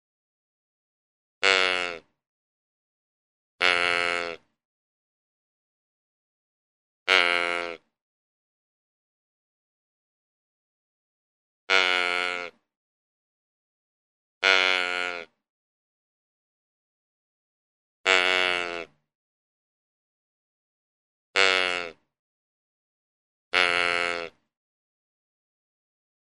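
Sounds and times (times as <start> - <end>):
deer giving nasal bleats: 1.4 - 2.1, 3.6 - 4.5, 7.1 - 7.9, 11.7 - 12.6, 14.4 - 15.3, 18.1 - 18.9, 21.4 - 22.0, 23.5 - 24.4.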